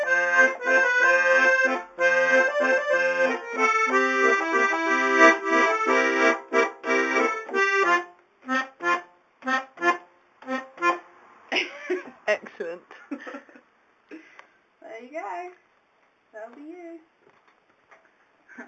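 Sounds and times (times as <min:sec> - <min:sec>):
accordion playing while learning a new song: 0:00.0 - 0:11.1.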